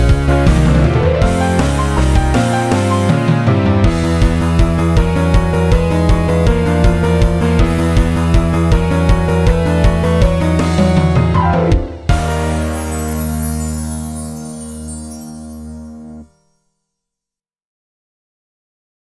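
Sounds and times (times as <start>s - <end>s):
drum machine beat: 0.0s - 3.2s, 3.9s - 12.7s
piano: 0.0s - 16.4s.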